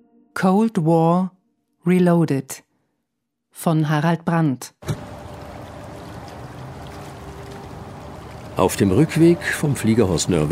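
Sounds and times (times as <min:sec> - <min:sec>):
speech: 0:00.4 - 0:02.7, 0:03.6 - 0:05.0, 0:08.6 - 0:10.5
Rhine water washing at the riverbank near Ingelheim Germany: 0:04.8 - 0:10.5.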